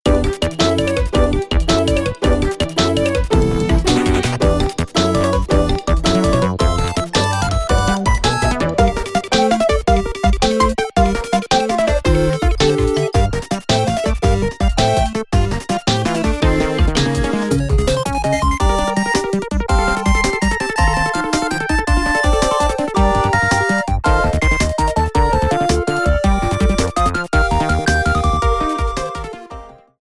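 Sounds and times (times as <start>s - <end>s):
toy rhythm: 0.1s - 29.4s.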